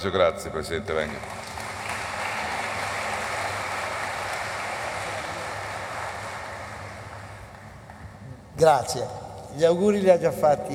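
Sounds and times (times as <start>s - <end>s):
speech: 0.0s - 1.5s, 8.6s - 10.7s
audience applause: 1.0s - 8.0s.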